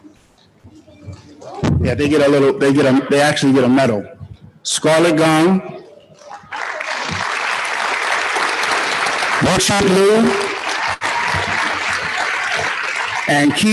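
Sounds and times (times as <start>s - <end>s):
speech: 1.4s - 5.7s, 9.4s - 10.5s, 13.3s - 13.7s
audience applause for award winners: 6.2s - 13.7s.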